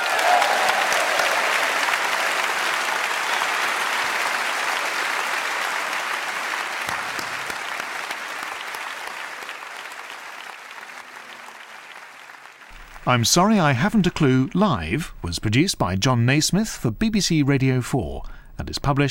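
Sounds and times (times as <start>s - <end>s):
audience applause: 0.0s - 14.5s
speech: 13.1s - 19.1s.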